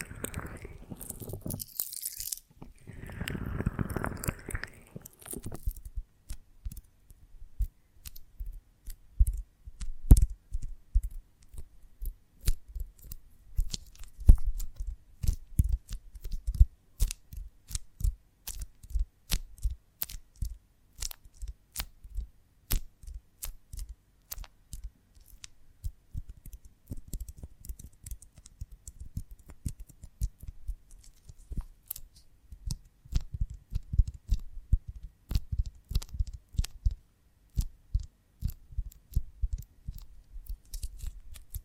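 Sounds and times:
honeycomb on a branch rustling and crunching: 0.0s - 5.9s
small sharp clicks and crackles from handled honeycomb: 0.0s - 41.6s.

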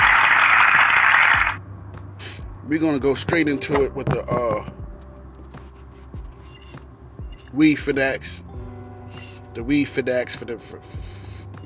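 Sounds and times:
audience applause: 0.0s - 1.6s
speech: 2.7s - 4.8s, 7.5s - 8.6s, 9.6s - 11.2s.

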